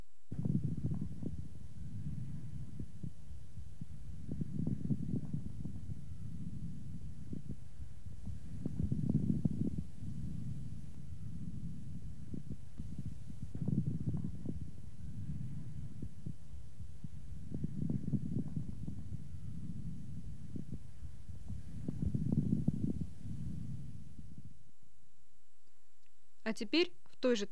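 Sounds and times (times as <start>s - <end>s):
low steady body hum: 0.0s - 27.5s
moist medium and coarse bubbling lung crackles through a stethoscope: 0.3s - 24.6s
speech: 26.5s - 27.5s.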